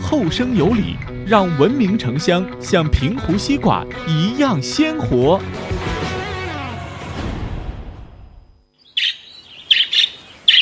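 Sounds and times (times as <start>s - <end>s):
speech: 0.1s - 5.9s
parrot calls: 8.8s - 10.5s.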